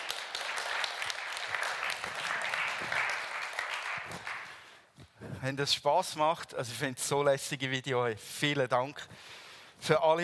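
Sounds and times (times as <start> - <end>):
audience clapping: 0.0 - 4.8
speech: 5.4 - 10.2.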